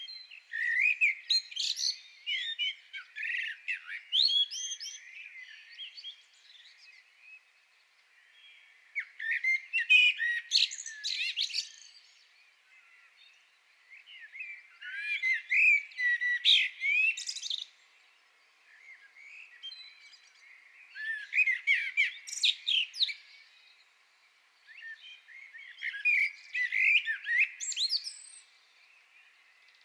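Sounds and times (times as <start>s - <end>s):
common blackbird singing: 0.0s - 24.0s, 24.6s - 29.8s.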